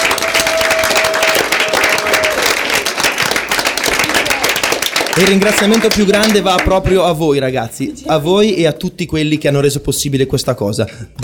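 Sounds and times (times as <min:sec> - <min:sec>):
audience applause: 0:00.0 - 0:07.0
speech: 0:05.2 - 0:11.2.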